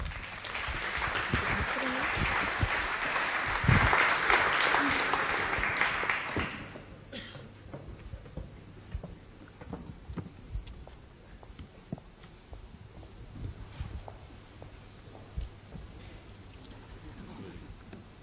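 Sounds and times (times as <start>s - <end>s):
audience applause: 0.0s - 7.1s.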